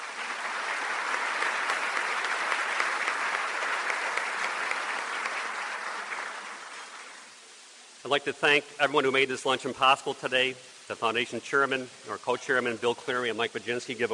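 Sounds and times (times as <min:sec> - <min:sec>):
audience applause: 0:00.0 - 0:07.3
speech: 0:08.1 - 0:14.1.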